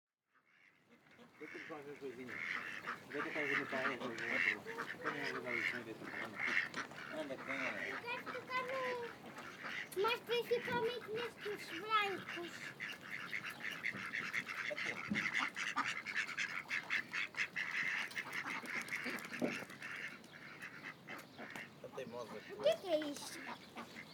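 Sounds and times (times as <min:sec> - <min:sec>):
ducks calling at a lagoon: 0:00.4 - 0:24.1.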